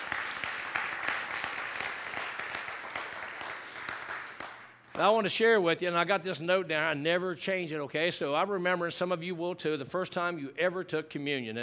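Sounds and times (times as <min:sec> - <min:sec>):
audience clapping in praise: 0:00.0 - 0:05.3
speech: 0:05.0 - 0:11.6.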